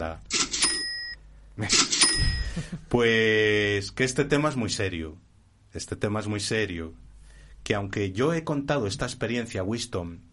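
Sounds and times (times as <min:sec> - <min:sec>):
speech: 0:00.0 - 0:00.3, 0:01.6 - 0:10.3
cash register keys clattering: 0:00.3 - 0:01.0, 0:01.8 - 0:02.4
cash register chime ringing: 0:00.3 - 0:01.2, 0:01.8 - 0:02.6.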